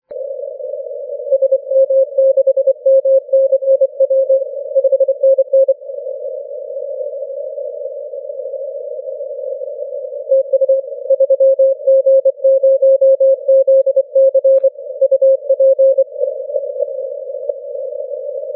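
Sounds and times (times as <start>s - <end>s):
30m band continuous wave morse code tones: 1.3s - 5.8s, 10.3s - 16.3s.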